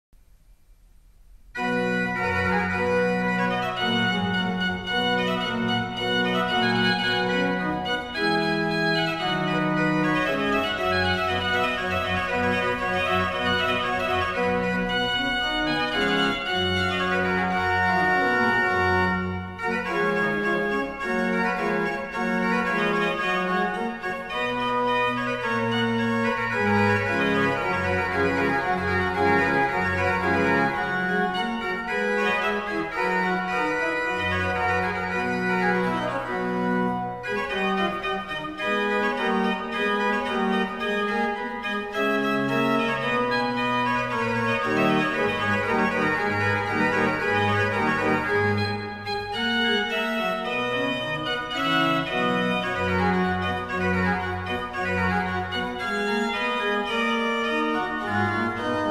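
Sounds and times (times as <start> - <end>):
organ sonata: 0.7 - 58.8.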